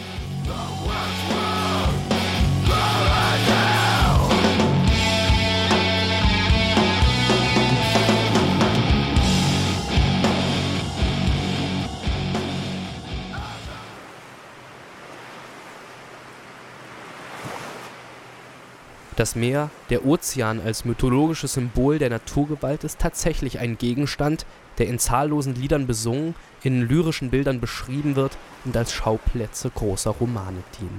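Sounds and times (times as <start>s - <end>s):
post-metal song: 0.0s - 13.9s
speech: 19.2s - 30.9s.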